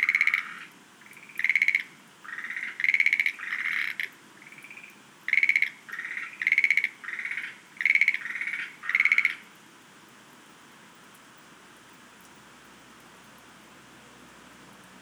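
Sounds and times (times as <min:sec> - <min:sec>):
Schlegel's green tree frogs rattling croaks: 0:00.0 - 0:09.4.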